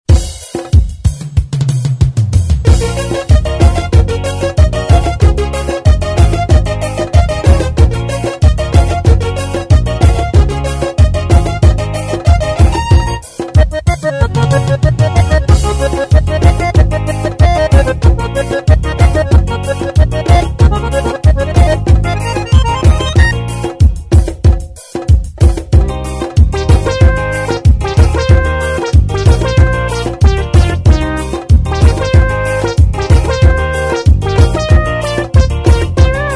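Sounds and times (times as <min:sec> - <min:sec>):
swung xote music: 0:00.1 - 0:36.3.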